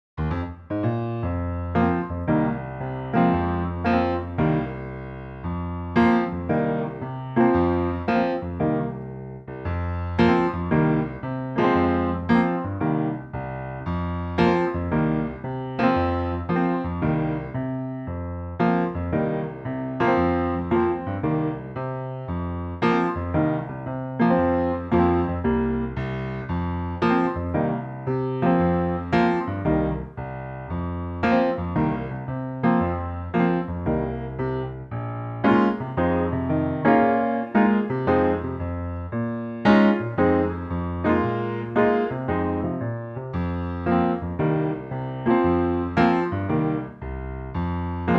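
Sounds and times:
FM synth piano: 0.2s - 48.1s.

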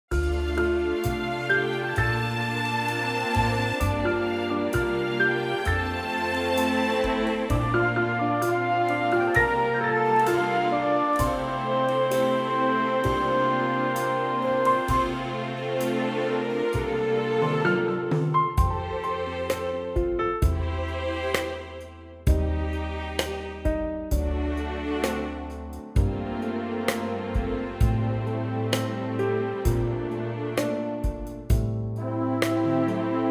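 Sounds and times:
orchestral F and G chords: 0.1s - 33.2s.

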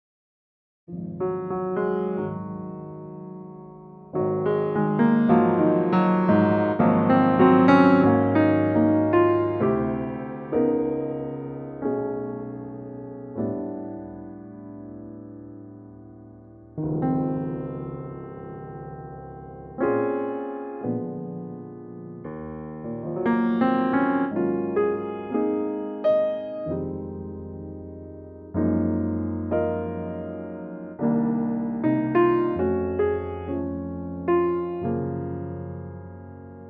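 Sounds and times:
piano in D-flat: 0.9s - 36.6s.

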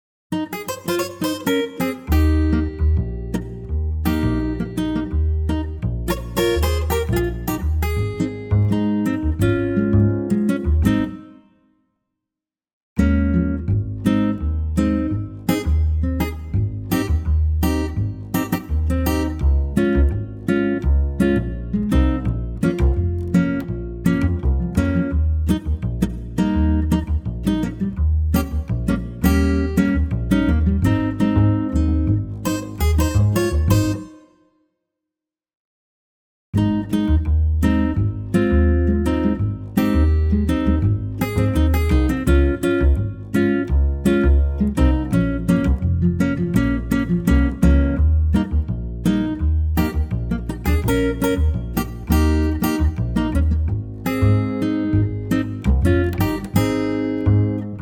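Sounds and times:
acoustic guitar in A-flat: 0.3s - 11.6s, 13.0s - 34.4s, 36.6s - 57.8s.

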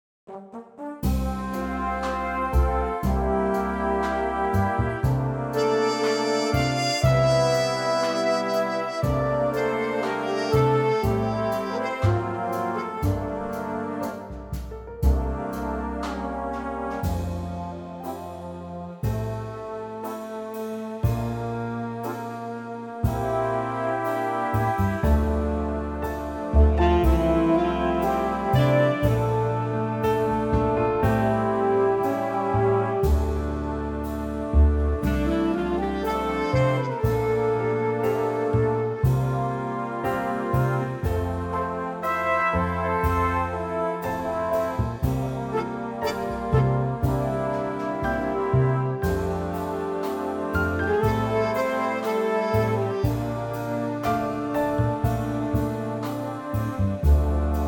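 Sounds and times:
big band music in F: 0.3s - 57.6s.

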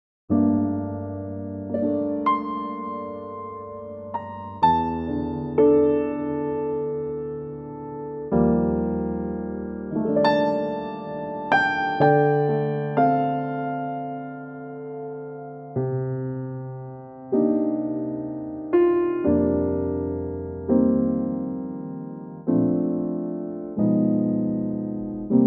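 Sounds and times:
piano in B flat: 0.3s - 25.4s.

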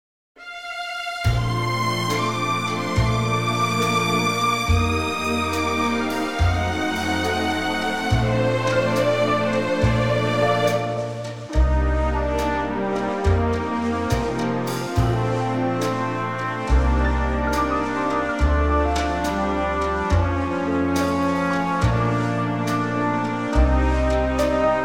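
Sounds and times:
orchestra playing in B flat: 0.4s - 24.8s.

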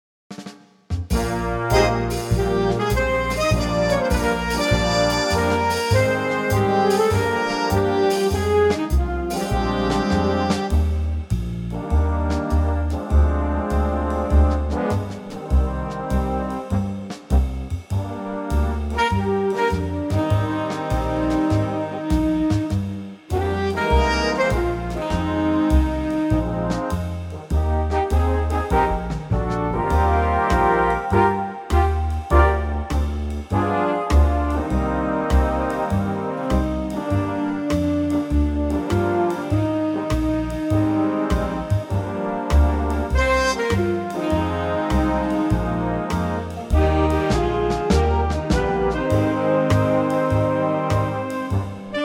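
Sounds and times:
big band music in E flat: 0.3s - 52.0s.

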